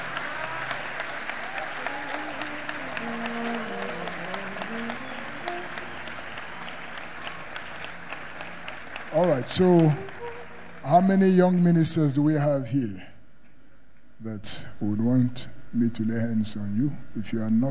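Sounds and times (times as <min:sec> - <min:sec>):
audience clapping: 0:00.0 - 0:12.2
speech: 0:09.2 - 0:10.0, 0:10.8 - 0:13.1, 0:14.2 - 0:17.6.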